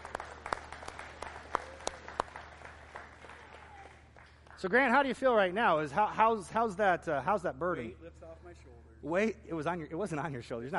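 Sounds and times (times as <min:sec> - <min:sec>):
audience applause: 0:00.0 - 0:04.6
speech: 0:04.6 - 0:10.7.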